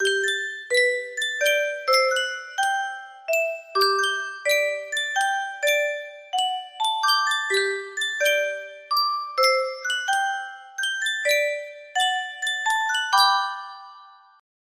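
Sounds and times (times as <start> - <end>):
Yunsheng music box melody: 0.0 - 14.4.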